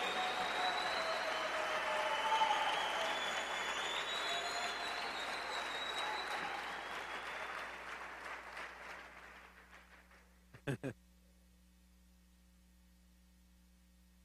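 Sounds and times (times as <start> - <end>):
audience applause: 0.0 - 10.1.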